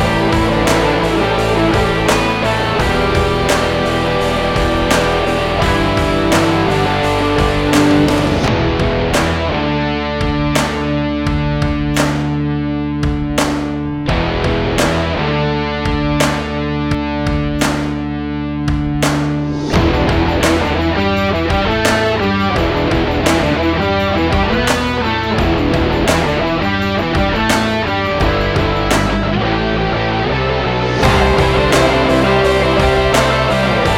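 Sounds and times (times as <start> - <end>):
stylish stomp sport rock music: 0.0 - 33.9.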